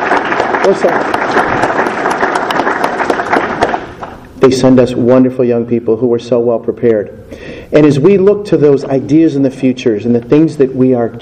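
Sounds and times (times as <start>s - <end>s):
one loud clap from audience: 0.0s - 4.3s
speech: 0.7s - 2.0s, 4.4s - 11.2s.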